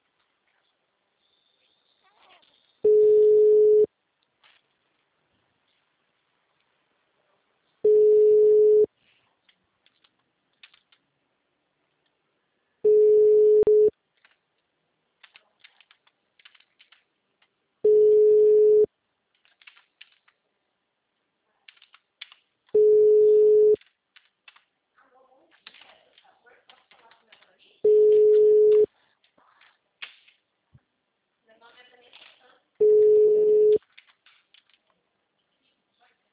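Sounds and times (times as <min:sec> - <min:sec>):
telephone busy tone: 0:02.9 - 0:03.9, 0:07.9 - 0:08.9, 0:12.8 - 0:13.9, 0:17.8 - 0:18.9, 0:22.8 - 0:23.8, 0:27.9 - 0:28.9, 0:32.8 - 0:33.8.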